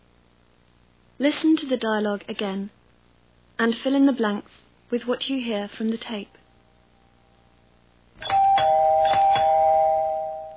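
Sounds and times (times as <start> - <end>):
speech: 1.2 - 2.8, 3.6 - 6.4
electronic doorbell ringing: 8.2 - 10.5.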